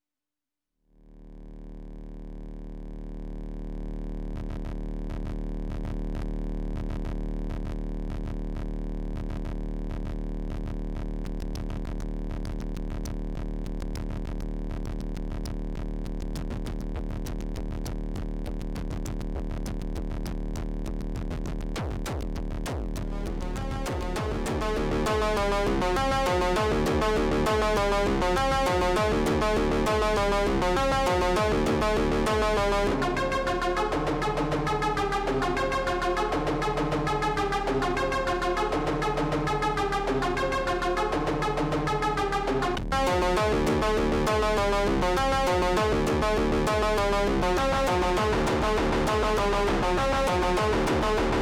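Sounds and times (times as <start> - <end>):
noise: 1.0 - 51.4.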